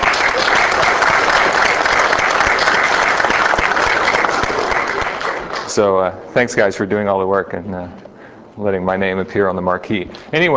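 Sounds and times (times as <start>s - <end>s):
audience applause: 0.0s - 5.9s
speech: 5.8s - 10.5s.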